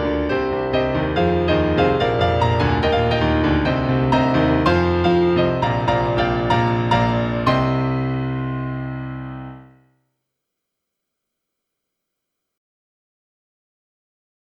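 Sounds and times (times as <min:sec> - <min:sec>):
piano: 0:00.0 - 0:09.9.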